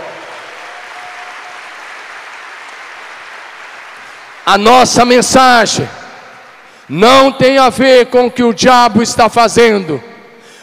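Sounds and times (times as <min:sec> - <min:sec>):
audience applauding: 0:00.0 - 0:05.2
speech: 0:04.5 - 0:06.0, 0:06.9 - 0:10.1.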